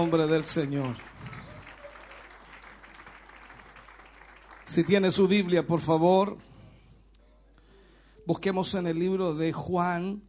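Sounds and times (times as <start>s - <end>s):
speech: 0.0s - 1.1s, 4.7s - 6.5s, 8.3s - 10.2s
church congregation applauding during a worship celebration service: 0.0s - 5.8s.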